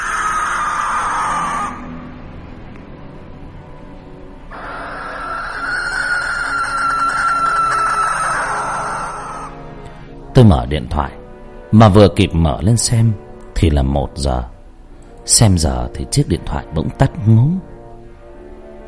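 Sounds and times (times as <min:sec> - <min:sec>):
barn owl screeching: 0:00.0 - 0:02.1, 0:04.5 - 0:09.6
speech: 0:10.4 - 0:14.5, 0:15.2 - 0:17.7.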